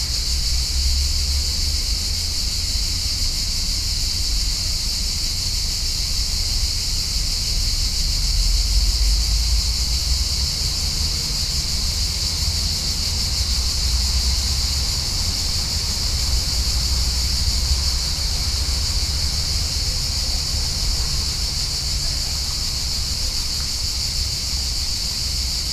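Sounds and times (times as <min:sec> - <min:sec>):
summer cicadas droning in a park in Lisbon Portugal: 0:00.0 - 0:25.7.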